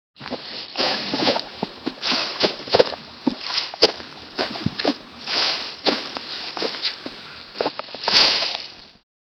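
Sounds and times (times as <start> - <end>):
horse galloping: 1.0 - 7.2.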